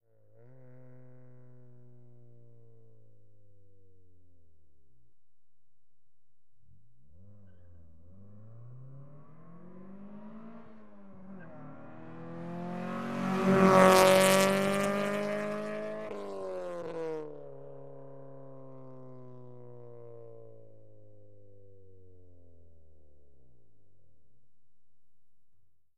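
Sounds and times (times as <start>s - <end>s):
Acura Integra approaching, passing fast and decelerating away: 8.4s - 17.4s.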